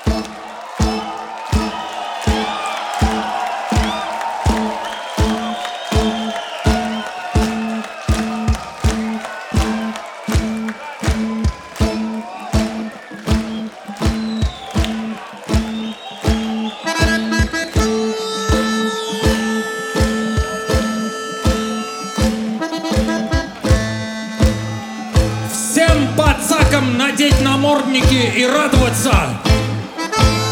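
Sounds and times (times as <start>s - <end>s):
high whistles: 0.0s - 27.8s
loud crowd clapping in a fast rhythm: 0.0s - 30.5s.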